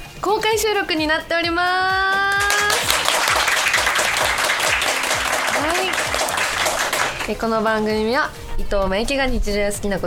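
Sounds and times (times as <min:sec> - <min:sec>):
speech: 0:00.2 - 0:02.6, 0:07.3 - 0:10.0
audience applause: 0:02.4 - 0:07.3.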